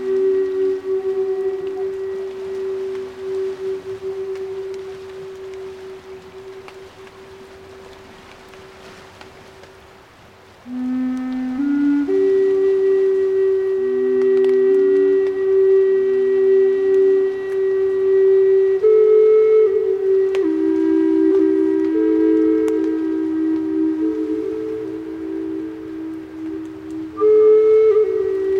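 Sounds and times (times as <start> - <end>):
rain forest canyon ambience: 0.0 - 28.5.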